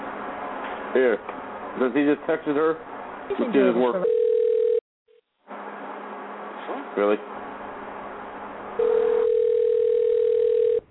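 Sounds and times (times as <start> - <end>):
speech: 0.9 - 4.2, 7.0 - 7.4
ringback tone of an unanswered telephone call: 4.0 - 4.8, 8.8 - 10.8.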